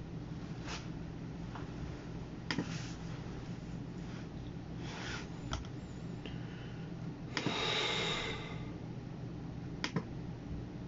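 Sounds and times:
computer hum: 0.0 - 10.8
sharp clicks and taps: 9.8 - 10.1.

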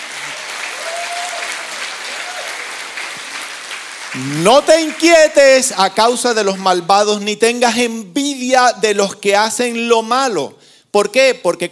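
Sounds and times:
audience applause: 0.0 - 5.4
speech: 4.1 - 11.6.

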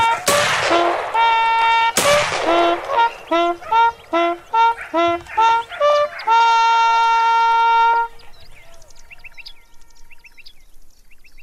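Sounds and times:
gunshots during a hunt: 0.0 - 4.5
honking calls: 0.0 - 10.3.

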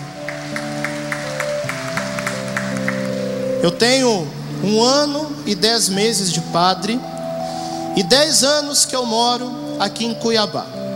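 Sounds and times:
rhythmic clapping: 0.0 - 3.8
sustained keyboard-like chords: 0.0 - 10.9
speech: 3.6 - 7.1, 8.0 - 10.9.

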